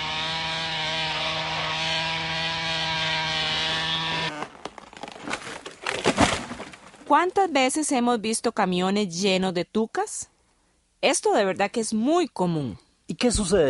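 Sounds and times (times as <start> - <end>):
chainsaw cutting trees: 0.0 - 4.7
wood cracking and splintering: 1.6 - 7.1
speech: 7.1 - 10.3, 11.0 - 13.6.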